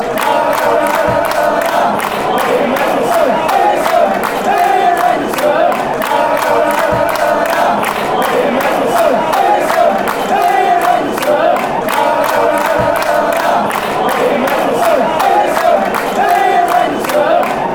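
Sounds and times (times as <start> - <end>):
fans chanting song: 0.0 - 17.7.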